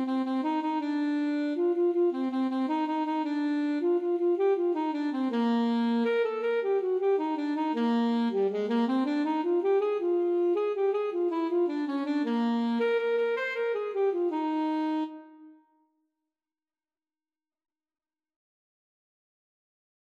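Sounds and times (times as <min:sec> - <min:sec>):
alto and tenor saxophone duet playing a Mexican folk dance: 0:00.0 - 0:15.6.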